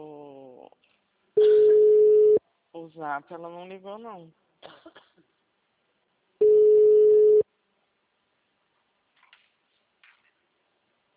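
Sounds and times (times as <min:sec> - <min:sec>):
ringback tone of a call to a mobile phone: 0:01.4 - 0:02.4, 0:06.4 - 0:07.4
speech: 0:03.0 - 0:04.4.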